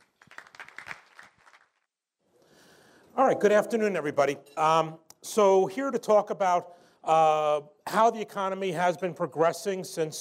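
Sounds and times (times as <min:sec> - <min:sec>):
audience applause for speakers: 0:00.0 - 0:01.8
speech: 0:03.2 - 0:10.1.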